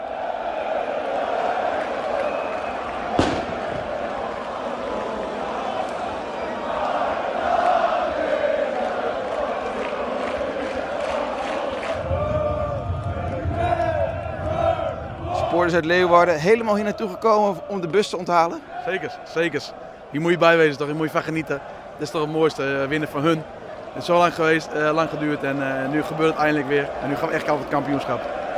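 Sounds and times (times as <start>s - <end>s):
football fans cheering and chanting: 0.0s - 28.5s
speech: 15.6s - 28.4s.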